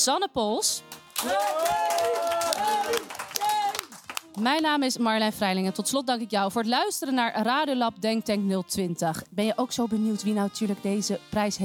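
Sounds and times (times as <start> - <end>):
speech: 0.0 - 3.2, 4.4 - 11.6
audience applause: 1.1 - 4.4.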